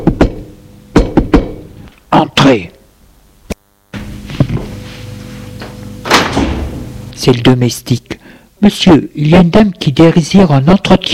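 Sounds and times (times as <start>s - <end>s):
knocking on a door: 0.0s - 0.4s, 1.0s - 1.6s
speech: 2.4s - 2.8s, 7.2s - 11.1s.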